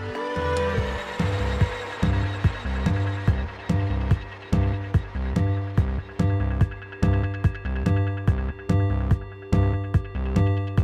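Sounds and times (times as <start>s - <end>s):
CNC mill motor hum: 0.0s - 7.8s
CNC mill cutting a PCB outline on a spoil board: 0.0s - 10.8s.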